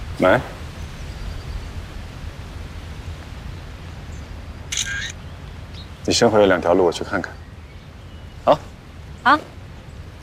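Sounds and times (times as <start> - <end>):
steady hiss: 0.0 - 10.2
speech: 0.2 - 0.6, 6.1 - 7.4, 8.5 - 9.6
camera shutter clicking as a photo is taken: 4.7 - 5.1.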